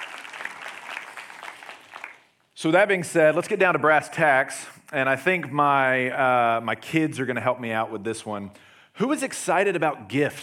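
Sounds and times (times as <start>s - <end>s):
crowd clapping in a round of applause: 0.0s - 2.4s
speech: 2.6s - 10.4s.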